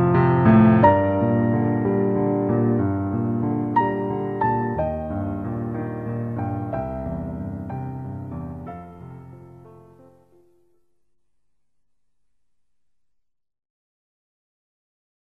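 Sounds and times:
short film background music: 0:00.0 - 0:10.7.

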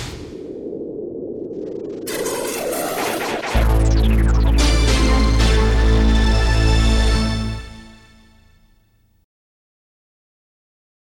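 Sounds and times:
TV ident music: 0:02.1 - 0:08.6.

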